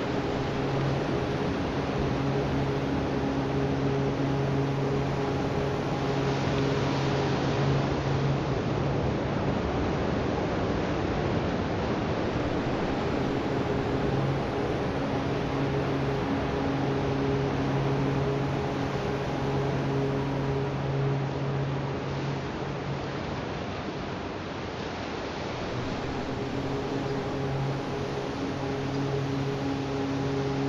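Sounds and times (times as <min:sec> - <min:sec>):
om chanting: 0:00.0 - 0:08.4, 0:12.3 - 0:23.2, 0:25.6 - 0:30.6
beach ambience at Linda Mar Beach: 0:00.0 - 0:30.6.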